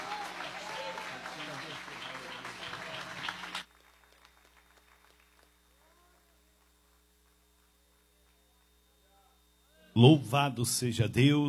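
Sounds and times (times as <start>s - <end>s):
audience clapping hands: 0.0s - 8.7s
speech: 10.0s - 11.4s.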